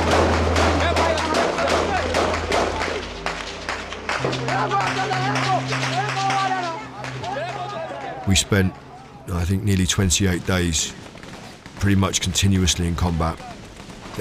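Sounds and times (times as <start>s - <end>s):
voices and shouting: 0.0s - 3.1s, 4.2s - 9.3s
gunfire on war front lines: 0.0s - 4.6s, 10.1s - 14.1s
speech: 8.3s - 11.1s, 11.8s - 13.6s.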